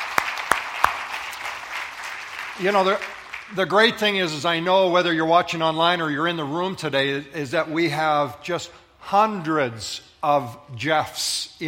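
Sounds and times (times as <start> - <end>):
audience applause in a room: 0.0 - 3.9
speech: 2.6 - 11.6.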